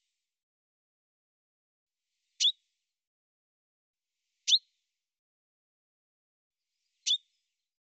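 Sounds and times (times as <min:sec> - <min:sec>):
bird chirping: 0:02.4 - 0:02.6, 0:06.9 - 0:07.4.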